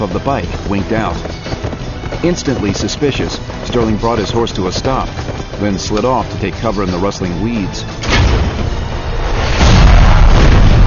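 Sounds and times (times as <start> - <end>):
speech: 0.0 - 1.4, 2.1 - 8.0
grenade explosion: 8.0 - 10.8.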